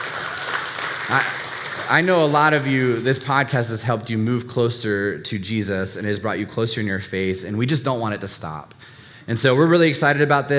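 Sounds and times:
audience clapping: 0.0 - 3.7
speech: 1.1 - 10.5.

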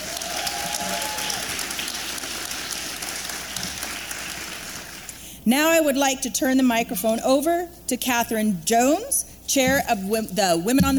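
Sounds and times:
audience applause: 0.0 - 5.1
speech: 5.5 - 10.9.

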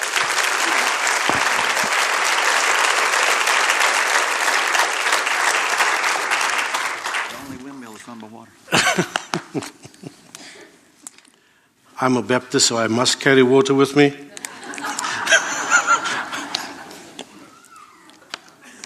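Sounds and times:
audience applause welcoming speaker: 0.0 - 8.4, 14.6 - 17.1
laughter: 8.7 - 10.6, 14.3 - 18.8
speech: 12.0 - 14.3.

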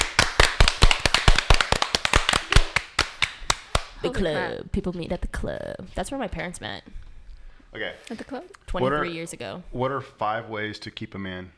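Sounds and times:
round of applause: 0.0 - 4.0
speech: 4.0 - 7.0, 7.7 - 11.5.

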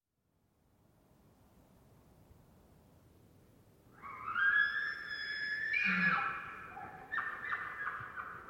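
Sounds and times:
elk screaming: 4.0 - 8.0.

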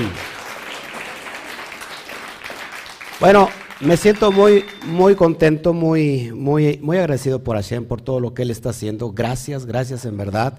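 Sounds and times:
audience applause: 0.0 - 5.2
speech: 3.2 - 10.5.

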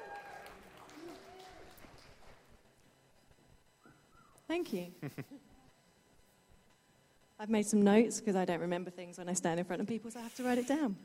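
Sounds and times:
audience clapping: 0.0 - 2.7
speech: 4.5 - 5.5, 7.4 - 11.0.

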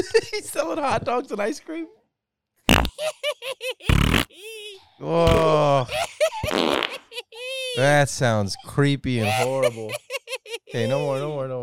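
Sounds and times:
speech: 0.0 - 2.0, 2.7 - 11.6
fart sound effect from soundboard button: 2.7 - 3.0, 3.9 - 4.3, 5.3 - 5.6
laughter: 2.9 - 8.0, 9.1 - 11.4.

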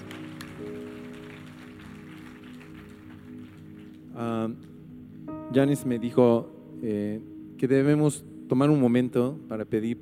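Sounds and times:
loud applause: 0.0 - 4.0
speech: 4.2 - 4.7, 5.5 - 9.9.

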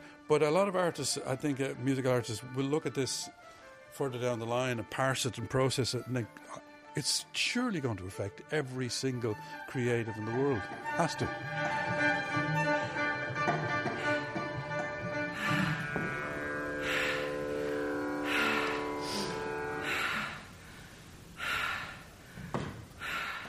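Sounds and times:
speech: 0.3 - 12.5
performer's slow deliberate breathing: 3.4 - 3.9, 9.4 - 9.7, 12.9 - 23.4
sustained harmonic tones: 9.8 - 21.3.

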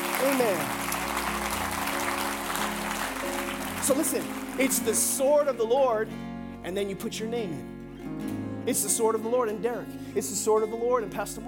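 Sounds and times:
audience clapping hands: 0.0 - 5.5
speech: 0.2 - 0.8, 3.8 - 11.4.

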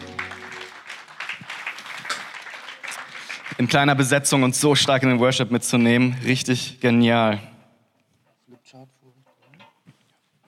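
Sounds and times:
audience applause: 0.0 - 4.3
speech: 3.5 - 7.5.

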